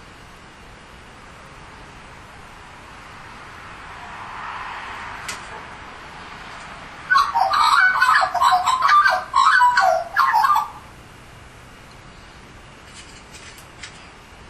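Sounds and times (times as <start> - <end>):
Australian magpie giving mellow gurgling warbles: 7.1 - 10.9.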